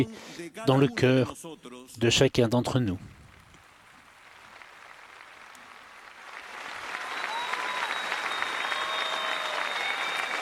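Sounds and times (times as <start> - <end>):
speech: 0.0 - 3.1
audience applauding: 3.8 - 10.3
faint whistles and cheers: 5.3 - 10.3.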